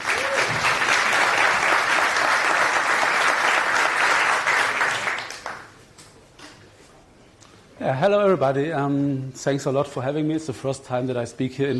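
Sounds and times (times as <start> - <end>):
crowd applause: 0.0 - 5.8
speech: 7.9 - 11.7.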